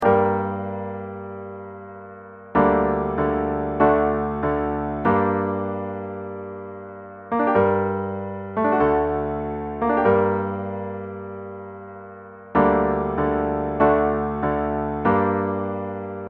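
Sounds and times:
musical accompaniment: 0.0 - 16.2.

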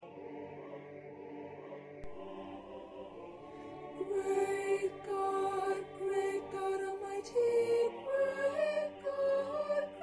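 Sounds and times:
first soprano singing: 2.0 - 10.0.

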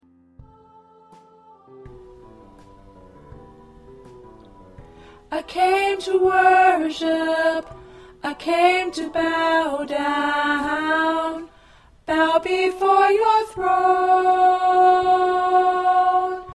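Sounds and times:
tenor choir part singing: 0.4 - 2.3, 5.3 - 16.5.

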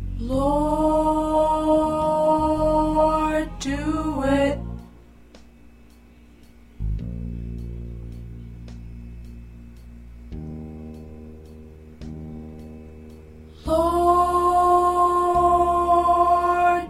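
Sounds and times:
tenor singing: 0.2 - 4.9, 13.7 - 16.8.

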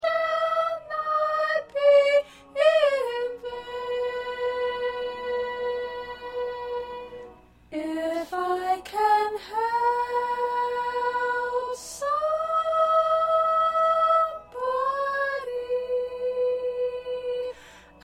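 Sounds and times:
first soprano singing: 0.0 - 18.0.

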